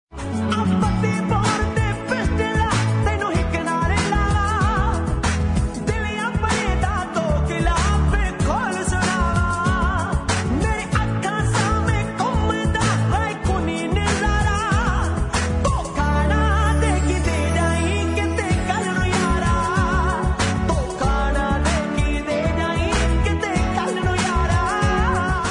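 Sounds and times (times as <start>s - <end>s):
Punjabi song: 0.1s - 25.5s.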